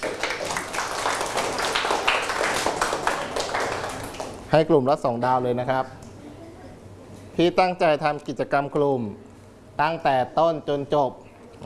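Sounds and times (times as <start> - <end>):
group of people applauding: 0.0 - 4.5
speech: 4.5 - 6.0, 7.4 - 11.6.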